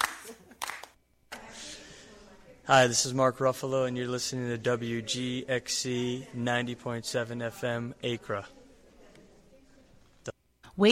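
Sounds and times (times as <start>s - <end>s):
hand claps: 0.0s - 1.0s
speech: 2.7s - 8.6s.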